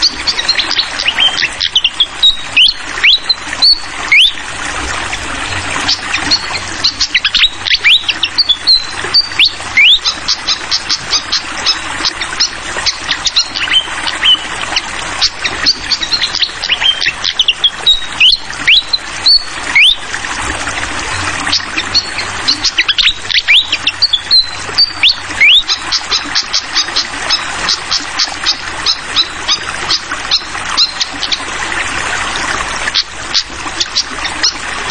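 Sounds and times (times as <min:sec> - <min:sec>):
fantail whistling: 0:00.0 - 0:04.4, 0:05.5 - 0:14.4, 0:15.2 - 0:20.0, 0:21.5 - 0:27.5, 0:28.4 - 0:31.4
continuous bubbling water: 0:00.0 - 0:34.8
fast dripping clicks: 0:00.0 - 0:34.8.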